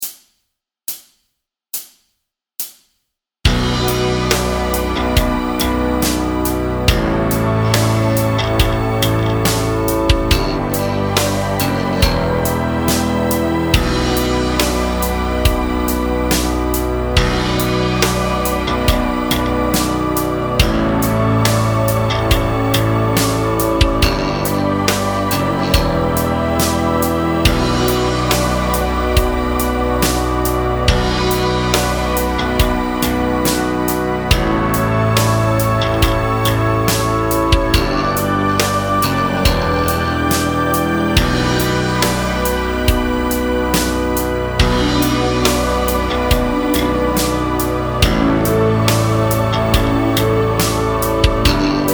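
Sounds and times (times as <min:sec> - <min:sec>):
backing track: 0:03.5 - 0:51.9.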